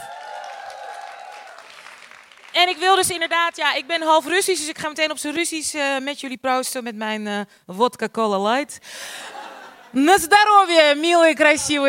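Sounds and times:
audience applause: 0.0 - 3.3
speech: 2.6 - 11.8.

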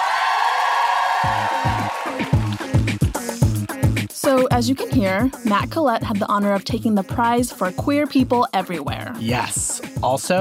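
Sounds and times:
audience cheering: 0.0 - 3.3
loud pounding rhythm: 1.2 - 10.4
speech: 4.4 - 10.4.

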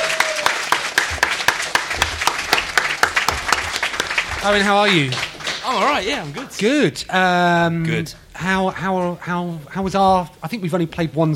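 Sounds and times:
audience clapping for the resident house DJ at a Game City event: 0.0 - 7.0
speech: 4.4 - 11.3.

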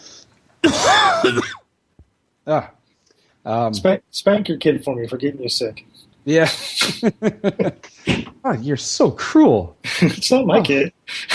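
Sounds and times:
sick man coughing: 0.6 - 1.6, 6.5 - 8.3
speech: 0.6 - 1.6, 2.4 - 2.8, 3.4 - 11.3
laughter: 6.3 - 8.3, 9.8 - 11.3.

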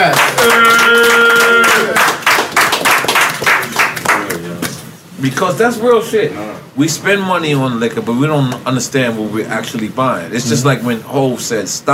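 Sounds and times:
people cheering: 0.0 - 3.8
people clapping: 0.0 - 4.8
speech: 5.2 - 11.9.

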